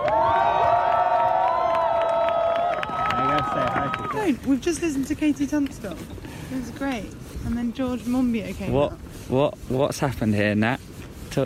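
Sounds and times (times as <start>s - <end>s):
scattered claps: 0.0s - 4.2s
large crowd cheering: 0.0s - 4.4s
speech: 4.2s - 11.4s.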